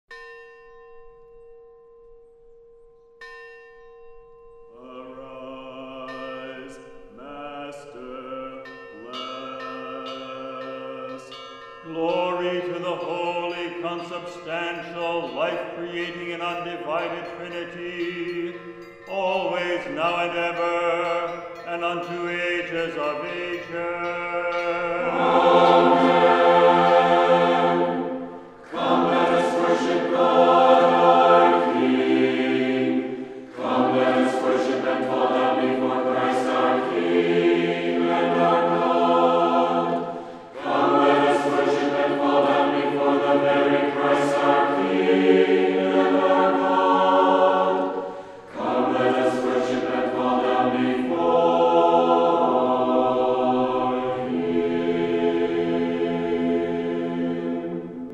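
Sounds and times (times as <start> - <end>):
bells ringing: 0.1 - 51.5
chorale: 0.1 - 58.1.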